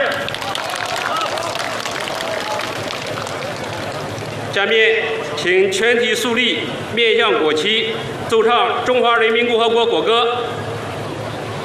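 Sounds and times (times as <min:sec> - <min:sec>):
warm applause from audience: 0:00.0 - 0:04.4
speech: 0:04.6 - 0:10.4.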